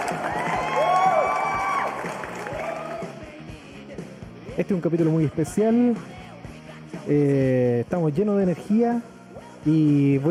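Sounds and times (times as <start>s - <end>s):
crowd applauding: 0.0s - 3.2s
speech: 4.6s - 6.2s, 7.1s - 10.2s.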